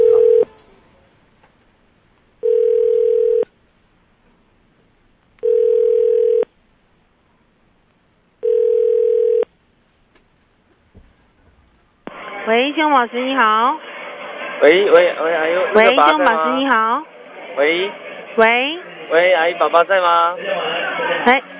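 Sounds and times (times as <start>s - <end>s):
telephone ringing tone beeps: 0.0s - 0.5s, 2.4s - 3.4s, 5.4s - 6.5s, 8.4s - 9.5s
speech: 12.5s - 13.9s, 14.6s - 21.5s.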